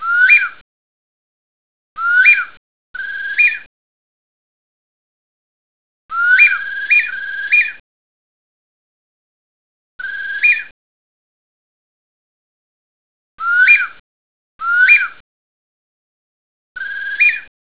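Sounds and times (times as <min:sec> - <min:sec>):
bird: 0:00.0 - 0:00.6, 0:02.0 - 0:03.7, 0:06.1 - 0:07.8, 0:10.0 - 0:10.8, 0:13.4 - 0:14.0, 0:14.6 - 0:15.2, 0:16.8 - 0:17.5.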